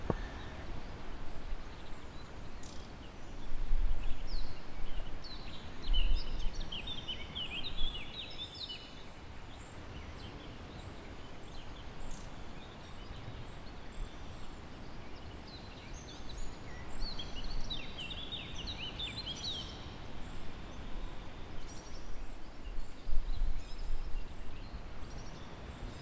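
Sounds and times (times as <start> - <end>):
nature sounds in Cala Fuili: 0.0 - 26.0.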